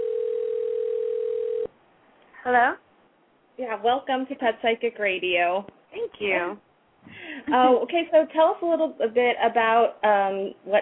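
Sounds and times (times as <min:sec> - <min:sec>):
telephone dial tone of outgoing call: 0:00.0 - 0:01.7
speech: 0:02.4 - 0:02.8, 0:03.6 - 0:10.8.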